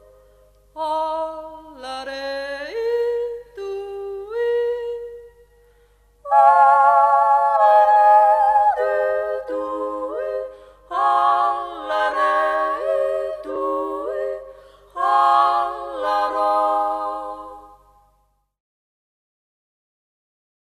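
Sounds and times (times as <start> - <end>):
yodeling: 0.8 - 5.5, 6.3 - 17.9.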